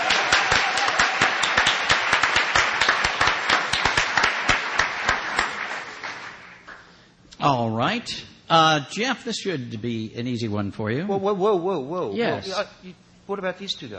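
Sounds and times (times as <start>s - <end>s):
crowd applauding: 0.0s - 6.9s
speech: 7.4s - 13.9s.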